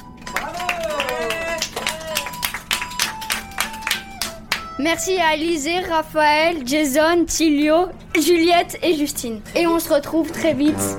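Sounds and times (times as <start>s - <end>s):
applause for the winner: 0.2s - 4.7s
speech: 4.8s - 10.9s.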